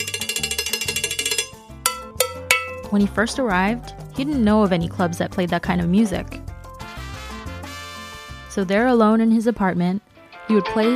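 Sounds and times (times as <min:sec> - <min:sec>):
cowbell rhythm: 0:00.0 - 0:04.3
speech: 0:02.9 - 0:06.4, 0:08.6 - 0:10.9.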